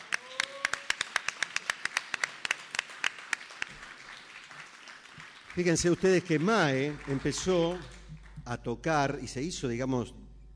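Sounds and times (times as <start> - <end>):
studio audience applause: 0.0 - 8.4
speech: 5.6 - 10.2.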